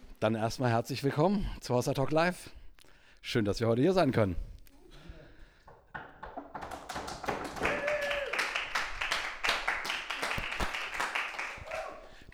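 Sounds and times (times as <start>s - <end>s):
speech: 0.2s - 2.6s, 3.2s - 4.5s
live audience applause: 5.9s - 12.3s.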